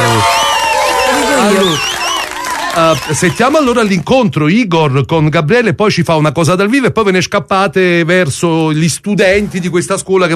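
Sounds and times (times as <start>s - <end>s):
audience applause: 0.0s - 4.1s
speech: 3.0s - 10.3s.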